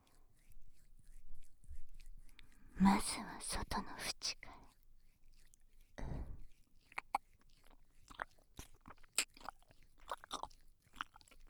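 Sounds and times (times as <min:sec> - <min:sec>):
ASMR ear-licking sounds: 0:00.3 - 0:11.4
speech: 0:02.8 - 0:04.4
light breathy noise: 0:06.0 - 0:06.5.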